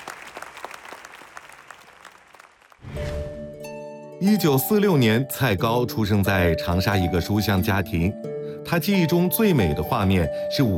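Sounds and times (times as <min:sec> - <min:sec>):
crowd applause: 0:00.0 - 0:02.9
loud sustained music with held tones: 0:03.4 - 0:10.7
speech: 0:04.2 - 0:10.7.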